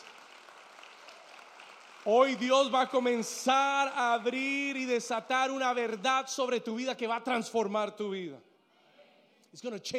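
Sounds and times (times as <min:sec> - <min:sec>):
audience applause: 0:00.0 - 0:03.1
speech: 0:02.0 - 0:08.5, 0:09.5 - 0:09.9.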